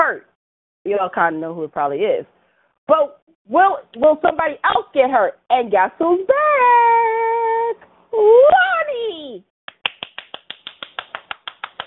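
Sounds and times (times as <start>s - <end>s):
speech: 0.1s - 7.2s, 8.2s - 9.5s
hand clapping: 9.7s - 11.8s.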